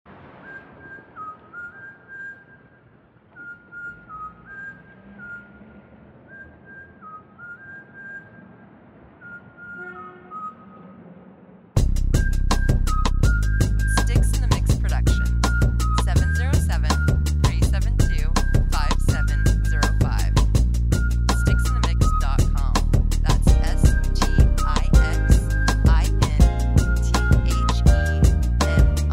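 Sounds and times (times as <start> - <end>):
whistling: 0.4 - 11.0, 12.1 - 29.0.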